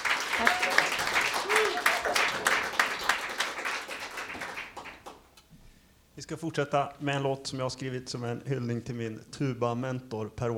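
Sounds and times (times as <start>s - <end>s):
audience applause: 0.0s - 5.2s
vocal whoops: 0.4s - 2.3s
speech: 6.3s - 10.5s.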